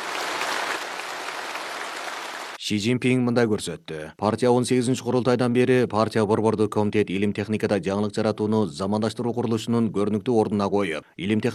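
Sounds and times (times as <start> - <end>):
applause at China's national science and technology award ceremony: 0.0 - 2.6
speech: 2.7 - 11.5.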